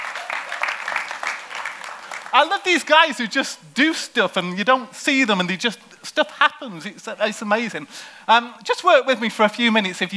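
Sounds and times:
audience applause: 0.0s - 2.4s
speech: 2.3s - 10.1s.

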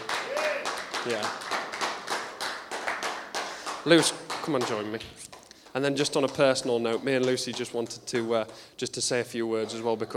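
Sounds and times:
clapping: 0.0s - 5.0s
speech: 1.0s - 1.4s, 3.8s - 10.1s.

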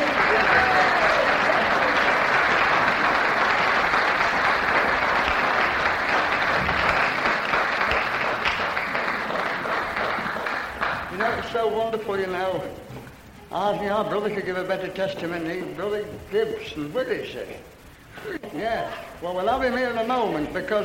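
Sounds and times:
audience clapping: 0.0s - 13.3s
speech: 13.5s - 20.8s.

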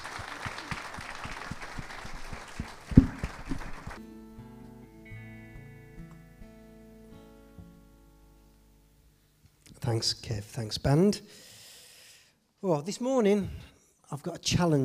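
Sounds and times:
audience applause: 0.0s - 4.0s
speech: 9.9s - 11.5s, 12.6s - 14.8s.

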